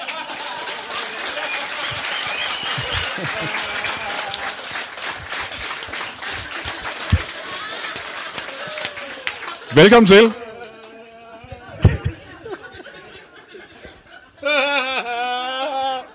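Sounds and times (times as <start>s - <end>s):
talk show audience applause welcoming a guest: 0.0s - 11.1s
laughter: 0.0s - 16.1s
speech: 9.8s - 10.4s.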